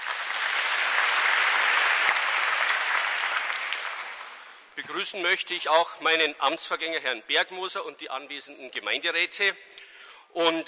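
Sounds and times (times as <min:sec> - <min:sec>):
audience applause: 0:00.0 - 0:04.7
speech: 0:04.8 - 0:10.6.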